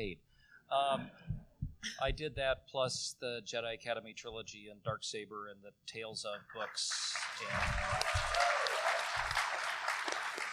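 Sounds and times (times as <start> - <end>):
speech: 0.0 - 8.6
crowd applauding: 6.8 - 10.5.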